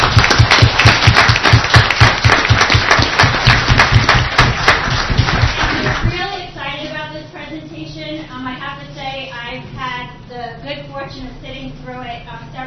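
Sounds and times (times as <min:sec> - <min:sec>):
audience applause: 0:00.0 - 0:06.1.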